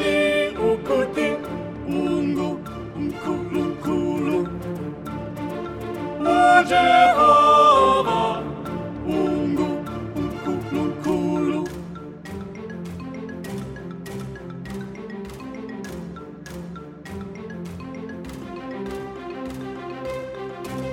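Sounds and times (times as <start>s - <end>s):
soprano singing: 0.0s - 12.0s.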